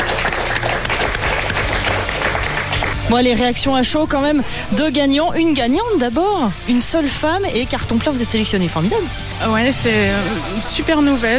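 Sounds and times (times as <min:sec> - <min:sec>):
audience applause for award winner: 0:00.0 - 0:03.1
speech: 0:03.1 - 0:11.3.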